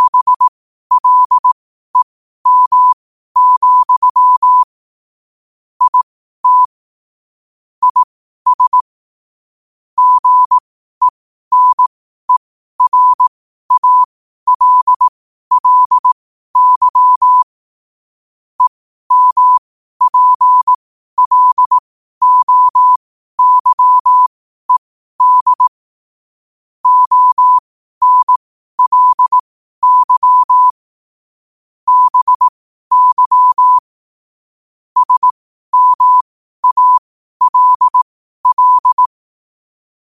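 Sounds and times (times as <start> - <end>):
morse code at 5 wpm: 0.0 - 4.7, 5.8 - 6.8, 7.8 - 8.9, 10.0 - 17.5, 18.6 - 25.8, 26.8 - 30.8, 31.9 - 33.9, 35.0 - 39.2.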